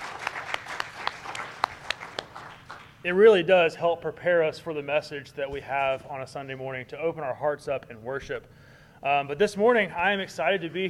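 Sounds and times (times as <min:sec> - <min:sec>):
church congregation applause for its worship team: 0:00.0 - 0:03.0
speech: 0:03.0 - 0:10.8.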